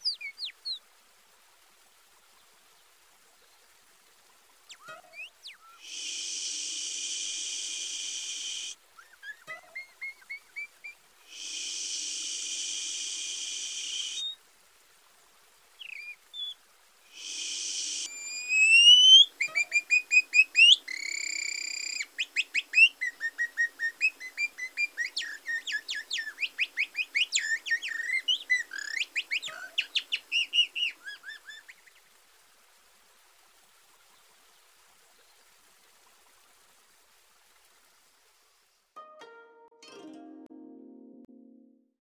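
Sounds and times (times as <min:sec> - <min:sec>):
multitrack nightingale whistle: 0:04.8 - 0:14.4, 0:15.8 - 0:31.8.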